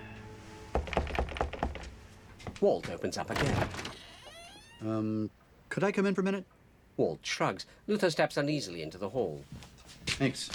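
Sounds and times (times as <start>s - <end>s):
knock on a door: 0.8s - 1.9s
speech: 2.6s - 3.9s, 4.8s - 10.5s.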